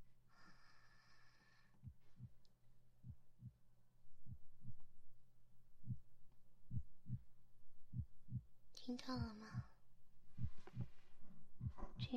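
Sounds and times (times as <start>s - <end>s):
low hum: 0.0s - 12.1s
heartbeat heard through a stethoscope: 1.8s - 2.4s, 3.0s - 3.6s, 4.2s - 4.9s, 5.8s - 12.1s
speech: 8.9s - 9.6s.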